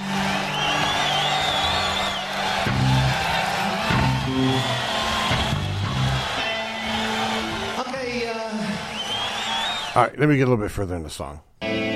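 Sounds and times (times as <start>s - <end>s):
cheering crowd at a live concert: 0.0s - 10.1s
speech: 10.0s - 11.8s.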